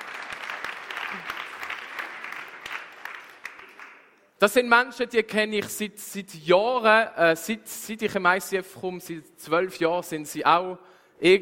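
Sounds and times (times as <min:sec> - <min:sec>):
audience applause: 0:00.0 - 0:04.1
speech: 0:04.4 - 0:11.4.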